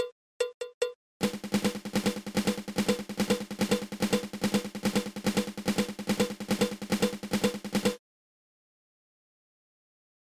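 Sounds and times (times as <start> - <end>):
snare drum patafla fla rudiment: 1.2 - 8.0.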